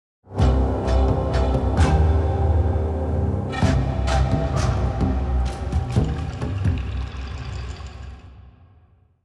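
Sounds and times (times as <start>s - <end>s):
play stinger: 0.3s - 7.1s.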